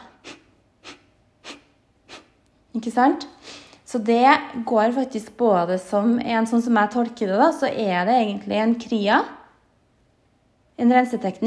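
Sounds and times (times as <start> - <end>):
rapid forceful exhalations through the nose: 0.0 - 2.4
speech: 2.8 - 9.4, 10.8 - 11.4.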